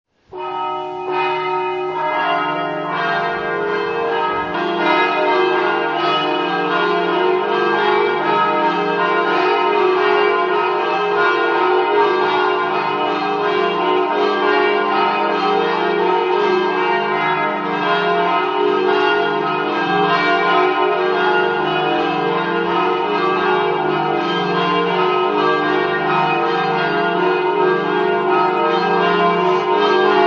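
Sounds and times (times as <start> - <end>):
bells ringing: 0.3 - 30.2.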